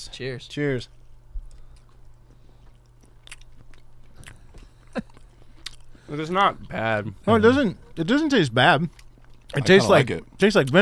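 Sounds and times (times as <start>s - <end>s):
speech: 0.2s - 1.0s, 6.1s - 10.7s
biting and chewing a pickled egg: 1.0s - 7.0s, 8.8s - 10.7s.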